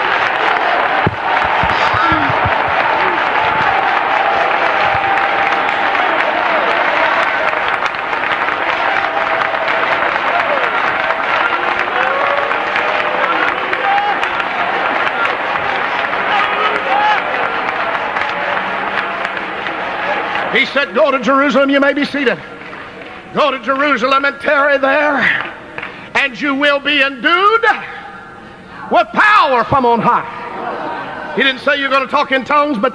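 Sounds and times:
crowd clapping and shouting: 0:00.0 - 0:26.1
speech: 0:20.8 - 0:22.6, 0:23.3 - 0:25.5, 0:26.2 - 0:27.9, 0:28.9 - 0:30.4, 0:31.4 - 0:32.9.

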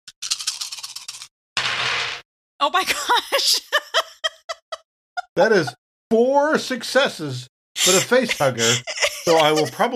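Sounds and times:
dice rattling and rolling: 0:00.2 - 0:01.3
speech: 0:02.6 - 0:04.0, 0:05.4 - 0:09.9
laughter: 0:02.8 - 0:05.8, 0:07.8 - 0:09.9.

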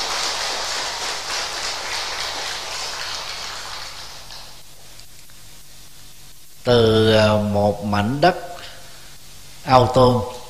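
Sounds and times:
audience applause: 0:00.0 - 0:04.6
speech: 0:06.6 - 0:08.5, 0:09.6 - 0:10.4.

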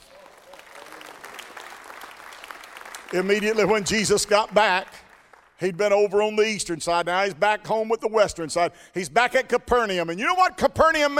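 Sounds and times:
audience applause: 0:00.0 - 0:05.6
speech: 0:03.1 - 0:05.0, 0:05.6 - 0:11.1.

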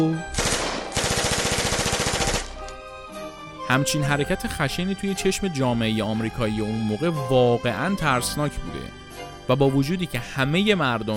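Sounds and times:
speech: 0:00.0 - 0:00.3, 0:03.7 - 0:11.1
tommy gun machine-gun fire: 0:00.4 - 0:02.6.

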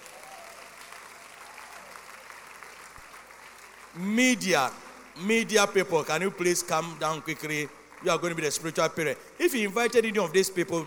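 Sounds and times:
church congregation applauding: 0:00.0 - 0:10.4
speech: 0:04.0 - 0:10.8.

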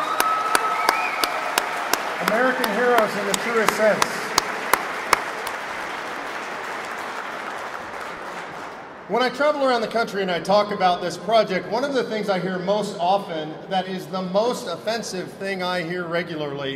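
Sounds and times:
rally crowd applause: 0:00.0 - 0:09.1
speech: 0:02.2 - 0:04.2, 0:09.1 - 0:16.7.

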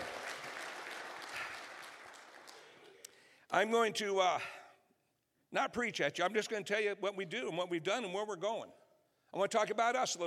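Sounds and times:
church audience applauding: 0:00.0 - 0:03.1
speech: 0:03.5 - 0:04.6, 0:05.5 - 0:10.2.

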